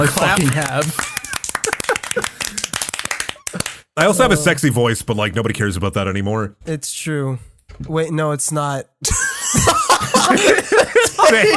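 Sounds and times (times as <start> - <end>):
speech: 0.0 - 1.2, 4.0 - 11.5
laughter: 0.0 - 2.7, 9.0 - 11.5
applause from a few people: 0.0 - 4.3.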